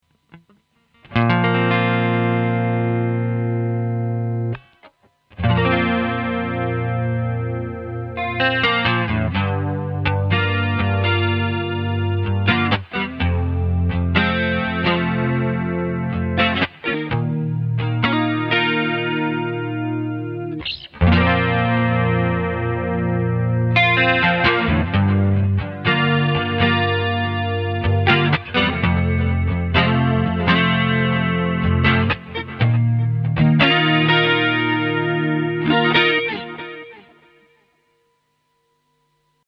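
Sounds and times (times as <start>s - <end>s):
chorus and delay effect: 0.0s - 39.4s.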